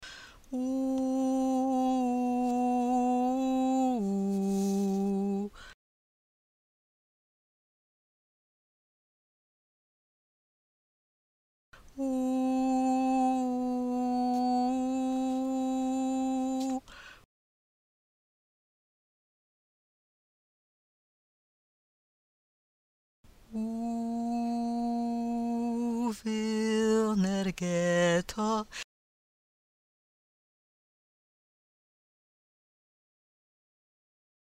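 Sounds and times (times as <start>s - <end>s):
tenor singing verses and refrain: 0.5s - 5.6s, 12.0s - 16.9s, 23.5s - 28.8s.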